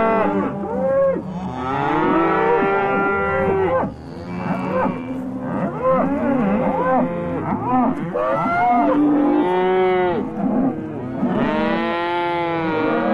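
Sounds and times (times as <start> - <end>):
cow mooing: 0.0 - 13.1.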